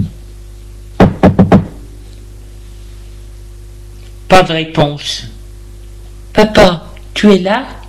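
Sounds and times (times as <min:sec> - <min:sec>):
knocking on a bedroom door: 0:01.0 - 0:01.8
speech: 0:04.3 - 0:05.4, 0:06.4 - 0:07.8.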